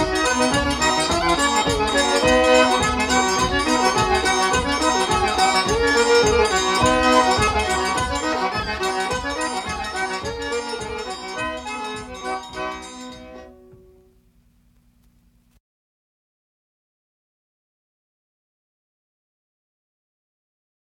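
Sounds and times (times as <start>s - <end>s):
Cajun music: 0.0s - 15.4s.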